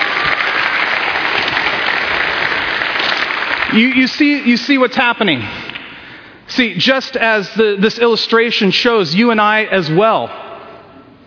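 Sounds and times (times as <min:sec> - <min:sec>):
audience applause: 0:00.0 - 0:04.5
speech: 0:03.7 - 0:05.7, 0:06.5 - 0:10.4.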